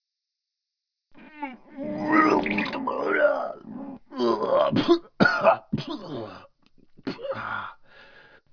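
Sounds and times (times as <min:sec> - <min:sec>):
person vomiting: 0:01.4 - 0:07.7.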